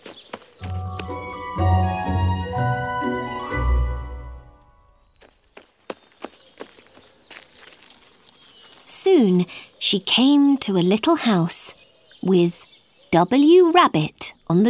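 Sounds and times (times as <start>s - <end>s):
footsteps running down a path: 0.0s - 1.4s, 5.1s - 7.9s
short burst of tuneful music: 0.6s - 5.0s
speech: 9.2s - 14.6s.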